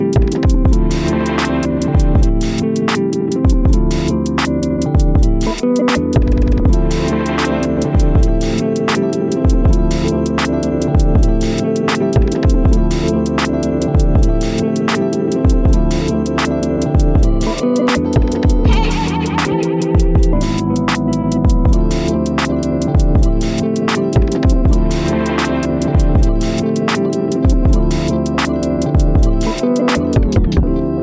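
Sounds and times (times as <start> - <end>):
lo-fi drums: 0.0 - 30.9.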